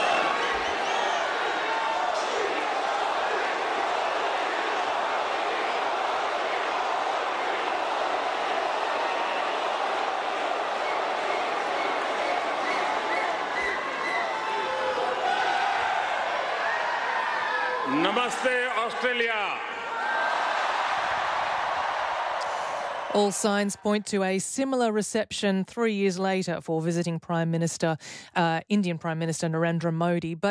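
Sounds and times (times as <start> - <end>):
arena crowd cheering for Prime Minister Narendra Modi at Sydney's Olympic Park: 0.0 - 24.9
speech: 18.2 - 19.6, 23.1 - 30.4.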